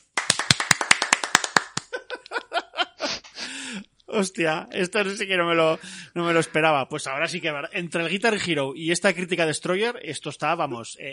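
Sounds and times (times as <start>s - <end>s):
applause: 0.0s - 1.9s
laughter: 1.8s - 3.5s
speech: 4.1s - 11.1s.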